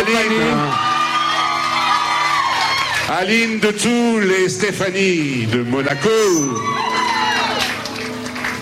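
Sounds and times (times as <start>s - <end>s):
audience applause: 0.0s - 3.6s, 6.6s - 8.6s
audience cheering: 0.0s - 3.7s, 5.5s - 8.6s
speech: 0.1s - 0.8s, 3.1s - 6.9s.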